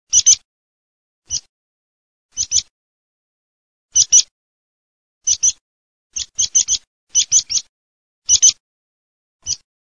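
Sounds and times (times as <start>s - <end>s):
meadow pipit calling: 0.1s - 0.4s, 2.3s - 2.7s, 4.0s - 4.3s, 5.2s - 7.7s, 8.3s - 8.6s, 9.4s - 9.7s.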